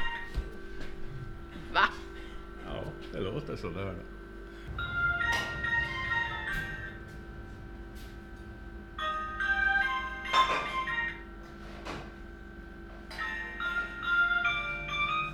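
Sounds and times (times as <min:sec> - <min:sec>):
low steady hum: 0:00.0 - 0:15.3
speech: 0:03.2 - 0:04.9
oven timer electronic chime melody signalling food ready: 0:04.7 - 0:11.6, 0:13.1 - 0:15.3.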